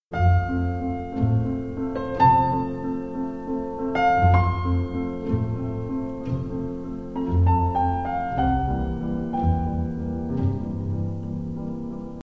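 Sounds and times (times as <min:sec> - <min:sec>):
piano concerto: 0:00.1 - 0:12.2.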